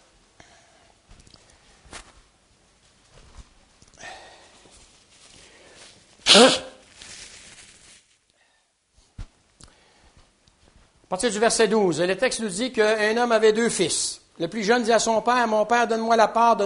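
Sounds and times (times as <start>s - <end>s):
man's jacket fabric rustling as he takes it off: 1.1s - 3.8s, 4.4s - 8.3s
speech: 11.1s - 16.6s.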